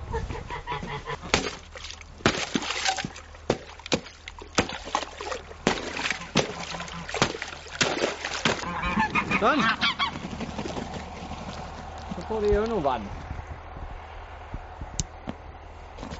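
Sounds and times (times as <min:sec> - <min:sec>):
geese honking: 0:00.0 - 0:01.8, 0:05.3 - 0:12.2
ice being broken for water: 0:01.2 - 0:08.7, 0:10.0 - 0:13.0
speech: 0:09.4 - 0:09.8, 0:12.4 - 0:13.2.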